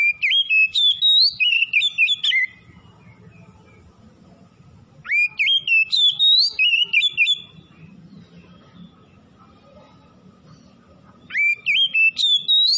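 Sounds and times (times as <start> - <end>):
Oriental magpie-robin singing warbled whistles: 0.0 - 2.6, 5.1 - 7.5, 11.3 - 12.7.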